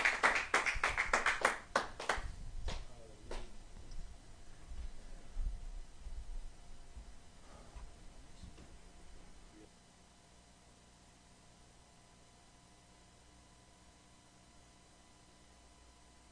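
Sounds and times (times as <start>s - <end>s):
audience clapping: 0.0s - 3.5s.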